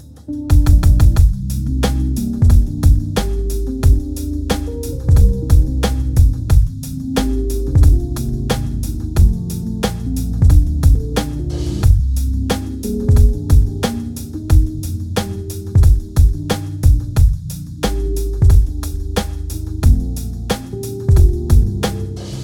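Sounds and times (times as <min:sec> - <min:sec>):
drums at 90 bpm: 0:00.0 - 0:22.4
piano at 90 bpm: 0:00.0 - 0:22.4.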